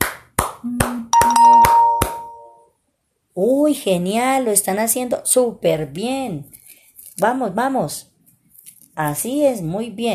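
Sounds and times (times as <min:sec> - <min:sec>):
hand clapping: 0:00.0 - 0:02.6
speech: 0:03.4 - 0:06.6, 0:07.2 - 0:08.1, 0:09.0 - 0:10.1.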